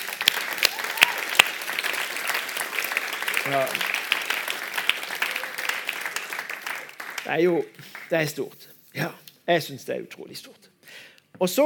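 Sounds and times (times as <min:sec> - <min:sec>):
audience applause: 0:00.0 - 0:08.3
speech: 0:03.5 - 0:03.9, 0:07.3 - 0:10.7, 0:11.4 - 0:11.6.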